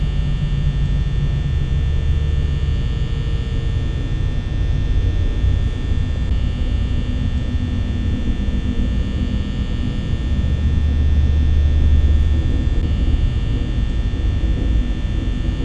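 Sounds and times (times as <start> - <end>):
main ambience: 0.0 - 15.6.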